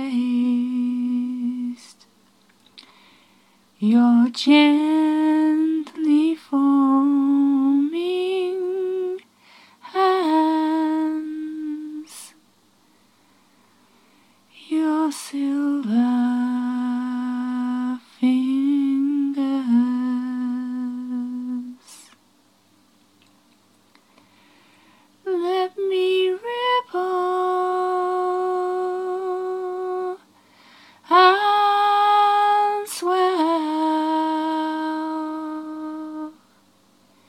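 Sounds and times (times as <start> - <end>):
woman singing: 0.0 - 2.1, 3.8 - 12.4, 14.5 - 22.2, 25.2 - 30.3, 31.0 - 36.4.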